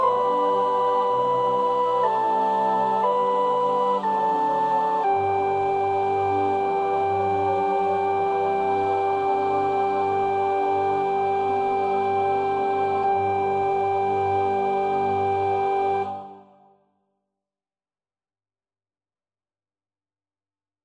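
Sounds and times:
soprano singing: 0.0 - 16.4.

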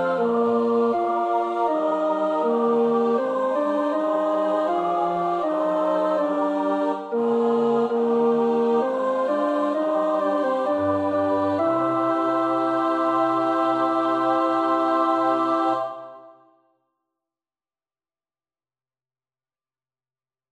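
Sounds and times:
tenor singing: 0.0 - 16.3.

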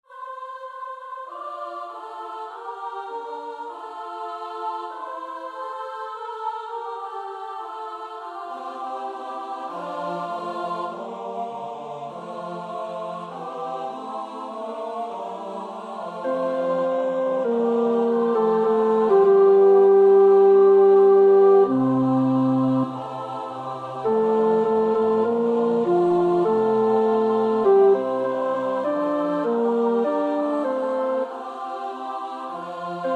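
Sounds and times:
tenor singing choir part practice: 0.0 - 33.1.

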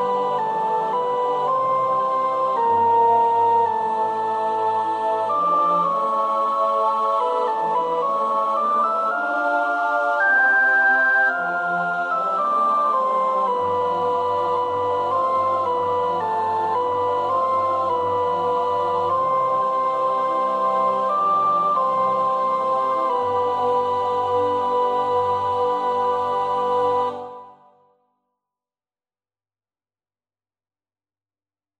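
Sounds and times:
second soprano singing with English text: 0.0 - 27.6.

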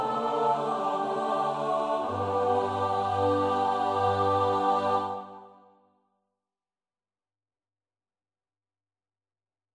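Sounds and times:
choir part singing for practice: 0.0 - 5.7.

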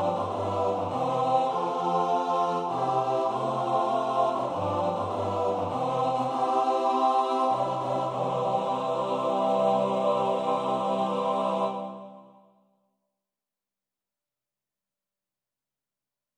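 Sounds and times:
male voice choir singing in four parts: 0.0 - 12.4.

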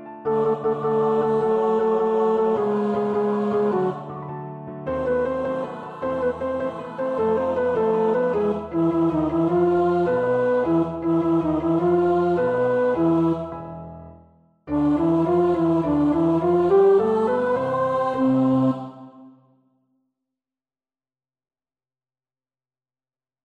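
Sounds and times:
tenor practising a choir part: 0.2 - 13.8, 14.7 - 19.4.

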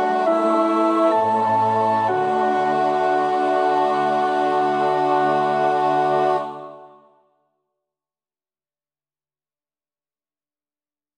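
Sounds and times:
soprano choir voices singing a chorale: 0.0 - 7.2.

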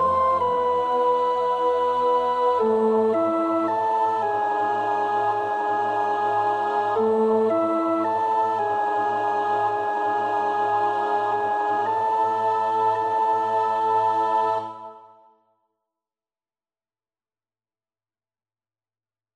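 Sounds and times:
soprano singing: 0.0 - 15.3.

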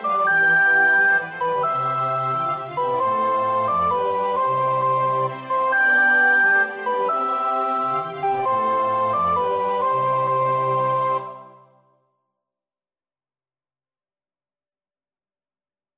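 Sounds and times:
soprano practising a choir part: 0.0 - 11.8.

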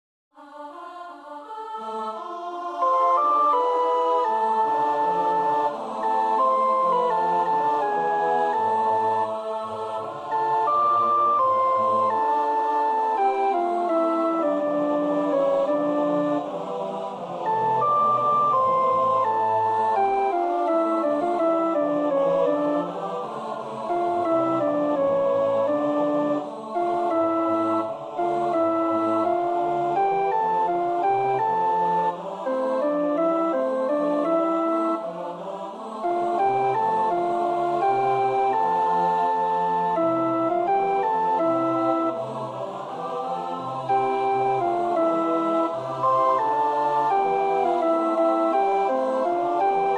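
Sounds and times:
soprano practising a choir part: 0.4 - 49.9.

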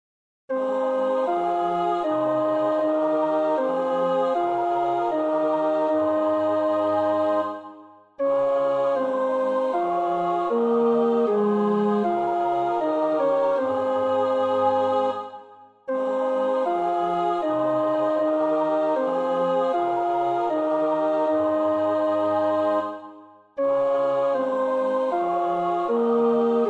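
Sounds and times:
tenor practising a choir part: 0.5 - 26.6.

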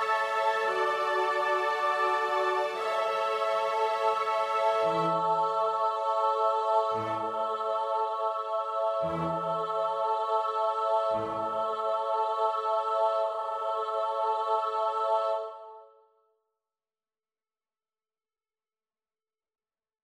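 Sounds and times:
alto choir part practice singing: 0.0 - 16.0.

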